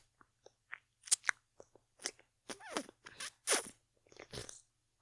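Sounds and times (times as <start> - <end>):
wet licking and mouth sounds: 0.7 - 4.6
breathy slurping: 2.0 - 4.7.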